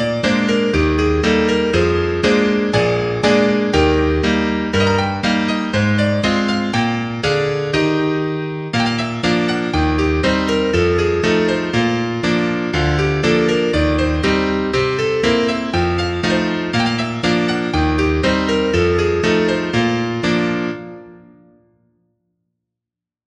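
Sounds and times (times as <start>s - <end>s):
piano intermezzo: 0.0s - 22.1s.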